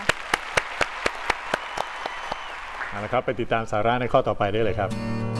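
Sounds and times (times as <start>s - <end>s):
audience applause: 0.0s - 3.5s
speech: 3.0s - 5.2s.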